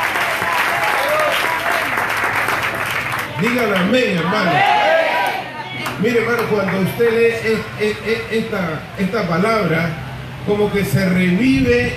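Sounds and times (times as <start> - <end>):
loud audience applause: 0.0 - 7.2
speech: 3.4 - 4.8, 6.0 - 11.9.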